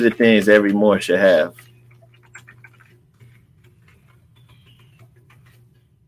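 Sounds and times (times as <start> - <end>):
speech: 0.0 - 1.7
low electrical hum: 0.0 - 6.0
typing on a keyboard: 1.9 - 5.9.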